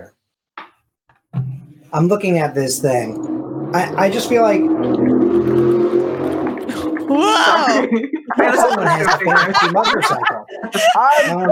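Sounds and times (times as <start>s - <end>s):
speech: 1.9s - 5.8s, 7.1s - 11.5s
powerboat speeding past: 2.7s - 7.2s
laughter: 6.7s - 11.5s.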